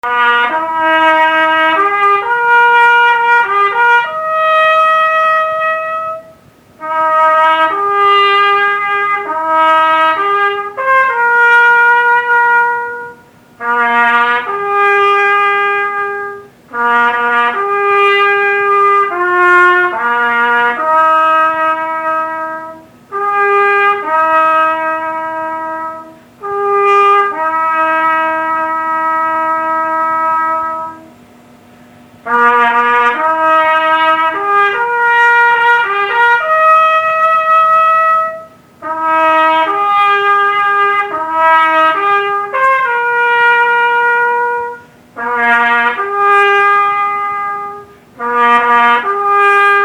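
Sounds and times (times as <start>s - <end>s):
trumpet call: 0.0s - 31.4s, 32.2s - 49.8s.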